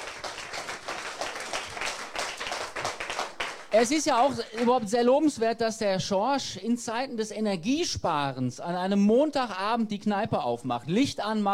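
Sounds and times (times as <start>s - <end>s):
audience applause: 0.0s - 4.8s
speech: 3.7s - 11.5s.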